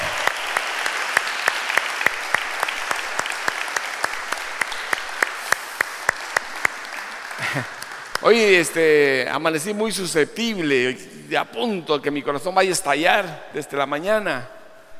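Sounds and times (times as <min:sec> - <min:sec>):
audience applause: 0:00.0 - 0:09.0
speech: 0:08.3 - 0:14.6.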